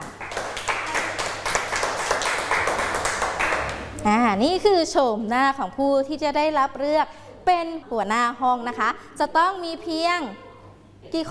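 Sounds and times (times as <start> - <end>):
clapping: 0.0 - 4.0
speech: 4.0 - 10.4, 11.0 - 11.3.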